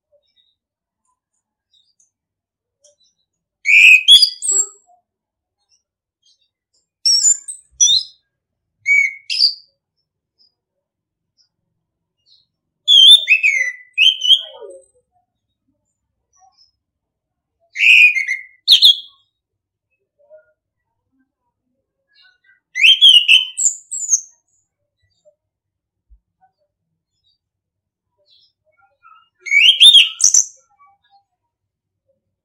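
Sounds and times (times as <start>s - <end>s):
orange-headed thrush whistled song: 3.7s - 4.5s, 12.9s - 14.4s, 17.8s - 19.1s, 22.8s - 23.9s, 29.3s - 30.5s.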